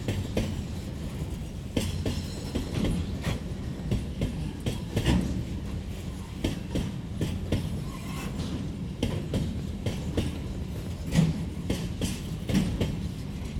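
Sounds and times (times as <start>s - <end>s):
freight train on tracks: 0.0s - 13.5s.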